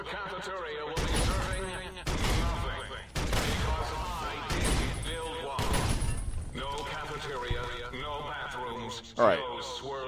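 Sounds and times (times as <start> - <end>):
speech: 0.4 - 1.8, 9.2 - 10.0
rapid 25 mm high-explosive gunfire in a video game: 1.0 - 8.5.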